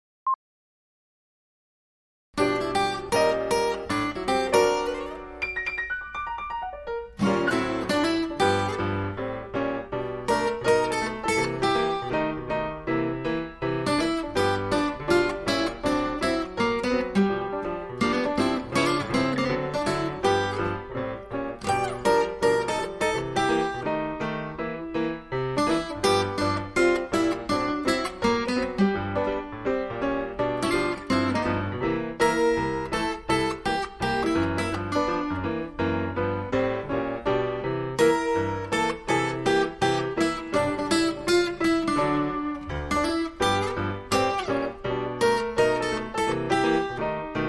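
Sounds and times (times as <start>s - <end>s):
blues music: 2.4s - 47.4s.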